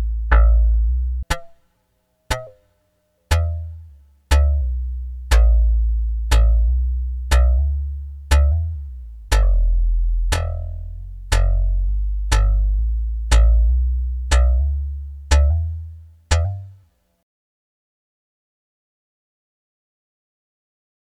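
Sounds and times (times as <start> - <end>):
Karplus-Strong plucked string synth: 0.0 - 1.6, 2.3 - 2.6, 3.3 - 16.8.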